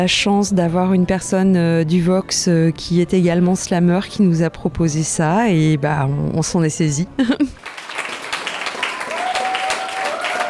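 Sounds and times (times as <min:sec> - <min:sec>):
speech: 0:00.0 - 0:07.7
audience applause: 0:07.6 - 0:10.4.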